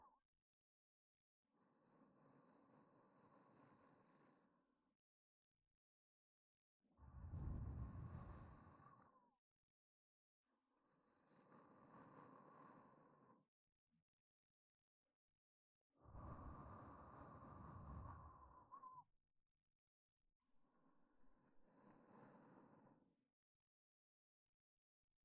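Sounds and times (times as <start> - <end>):
person breathing in sleep: 1.8 - 4.6, 7.2 - 9.2, 11.1 - 13.5, 16.0 - 19.0, 21.4 - 23.1.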